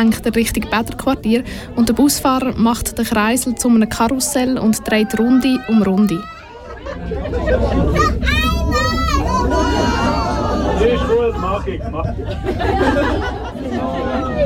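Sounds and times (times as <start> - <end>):
speech: 0.0 - 8.5, 10.8 - 14.4
passengers chatting loudly inside a bus: 0.0 - 14.4
laughter: 3.8 - 14.4.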